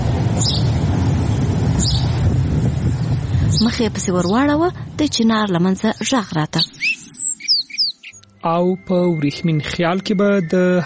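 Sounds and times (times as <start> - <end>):
loud steady wind-like rumbling: 0.0 - 7.9
bird chirping outdoors: 0.4 - 0.8, 1.7 - 2.2, 5.3 - 10.8
speech: 3.7 - 6.9, 8.4 - 10.8.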